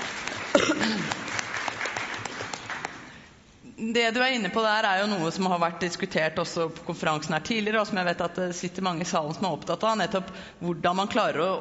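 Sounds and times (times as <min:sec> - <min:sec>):
audience applause: 0:00.0 - 0:03.2
speech: 0:00.6 - 0:01.2, 0:03.8 - 0:11.5.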